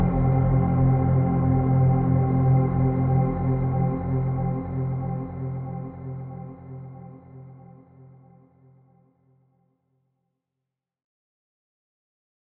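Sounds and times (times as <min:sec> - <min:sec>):
ambient music interlude: 0:00.0 - 0:07.7.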